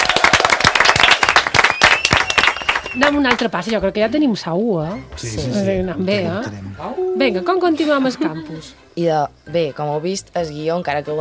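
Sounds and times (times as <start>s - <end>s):
loud applause from a group: 0.0s - 3.2s
speech: 2.9s - 11.1s.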